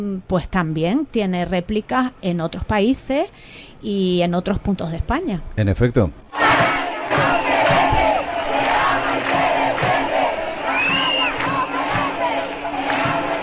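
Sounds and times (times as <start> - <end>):
speech: 0.0 - 6.4
dense street crowd cheering and shouting: 6.4 - 13.4
whoops and yells: 10.7 - 11.5.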